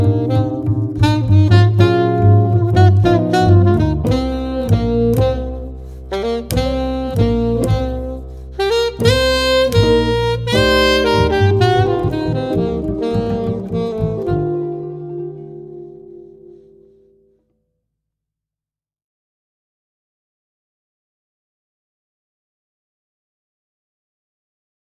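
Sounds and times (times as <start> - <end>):
guitar trio: 0.0 - 17.3.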